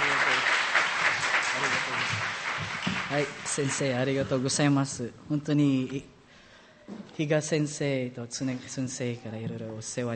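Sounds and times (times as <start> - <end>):
audience applause: 0.0 - 4.3
speech: 3.1 - 6.2, 6.9 - 10.1.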